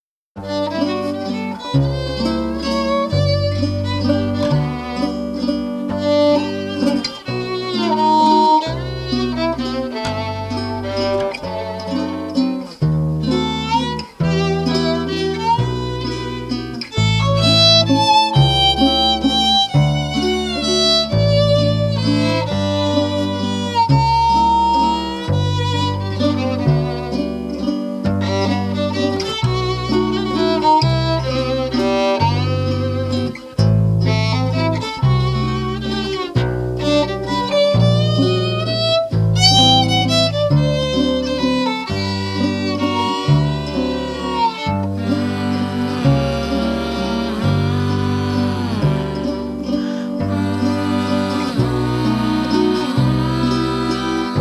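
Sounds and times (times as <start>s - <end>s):
waltz music: 0.4s - 54.3s.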